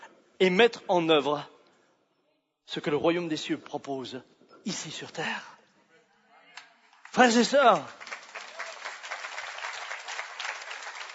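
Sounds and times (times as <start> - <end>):
speech: 0.4 - 1.5, 2.7 - 5.5, 7.1 - 8.0
church congregation applauding: 6.6 - 11.1.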